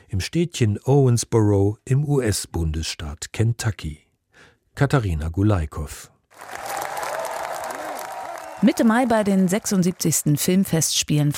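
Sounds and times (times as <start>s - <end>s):
speech: 0.1s - 4.0s, 4.8s - 6.7s, 8.6s - 11.3s
large crowd applauding at a film festival: 6.3s - 10.7s
faint voices and cheers: 6.4s - 10.2s.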